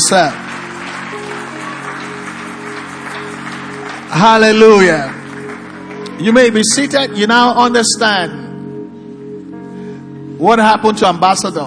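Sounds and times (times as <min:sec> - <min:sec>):
audience clapping hands: 0:00.0 - 0:07.0
speech: 0:00.1 - 0:00.4, 0:04.1 - 0:05.2, 0:06.2 - 0:08.4, 0:10.4 - 0:11.6.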